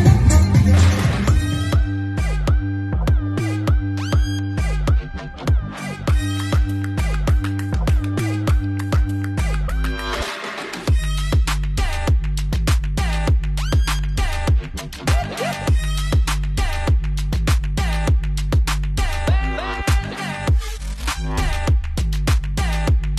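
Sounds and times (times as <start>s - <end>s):
loud driving music for a fire dance at Alona Beach, Bohol, Philippines: 0.0s - 23.1s.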